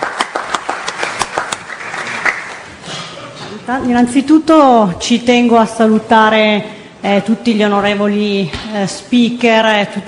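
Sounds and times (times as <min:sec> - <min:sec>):
audience applause: 0:00.0 - 0:02.7
speech: 0:03.6 - 0:10.0.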